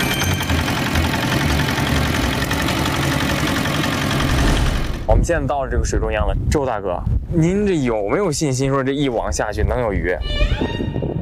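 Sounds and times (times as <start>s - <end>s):
fishing boat engine idling: 0.0s - 5.1s
speech: 5.2s - 10.8s.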